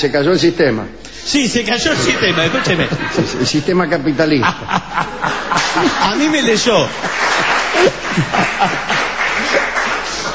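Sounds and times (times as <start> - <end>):
speech: 0.0 - 10.3
laughter: 1.8 - 10.3
audience applause: 5.1 - 10.3.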